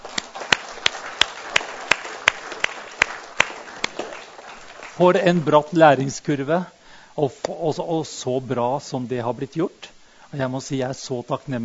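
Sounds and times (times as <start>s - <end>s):
audience applause: 0.0s - 6.1s
speech: 5.0s - 11.6s.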